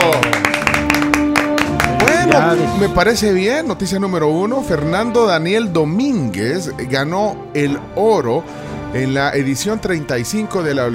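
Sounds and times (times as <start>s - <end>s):
applause: 0.0s - 2.8s
speech: 2.3s - 10.9s.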